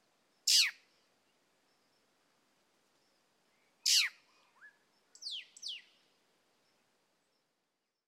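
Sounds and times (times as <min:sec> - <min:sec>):
bird in the Tumbes mangrove sanctuary: 0:00.4 - 0:01.1, 0:03.0 - 0:06.1.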